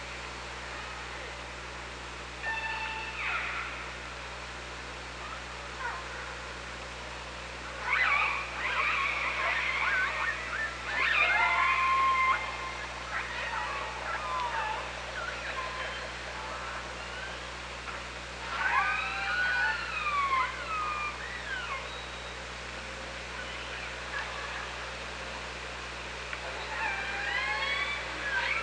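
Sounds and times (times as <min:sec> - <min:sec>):
low hum: 0:00.0 - 0:28.6
killer whale calls: 0:02.4 - 0:04.0, 0:07.8 - 0:22.4, 0:23.3 - 0:25.0, 0:26.4 - 0:28.6.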